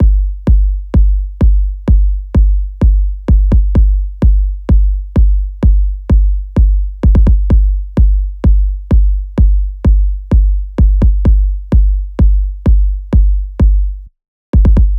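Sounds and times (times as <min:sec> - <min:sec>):
kick drum loop at 128 BPM: 0:00.0 - 0:14.9.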